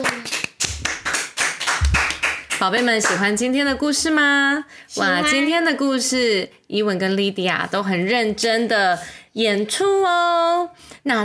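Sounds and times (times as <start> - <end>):
clapping: 0.0 - 3.3
speech: 2.6 - 11.2.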